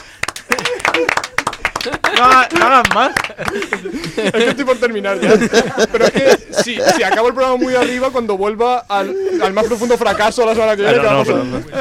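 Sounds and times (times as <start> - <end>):
scattered clapping: 0.0 - 4.4
laughter: 0.4 - 11.7
speech: 1.8 - 11.7.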